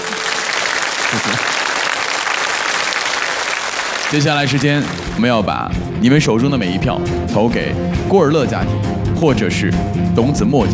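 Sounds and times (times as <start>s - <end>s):
audience applause: 0.0s - 5.5s
speech: 4.1s - 10.7s.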